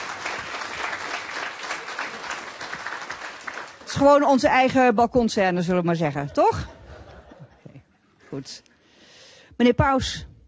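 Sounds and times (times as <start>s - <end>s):
audience applause: 0.0s - 4.0s
laughter: 1.7s - 2.9s, 6.2s - 8.2s
speech: 3.9s - 6.8s, 8.3s - 8.7s, 9.6s - 10.3s.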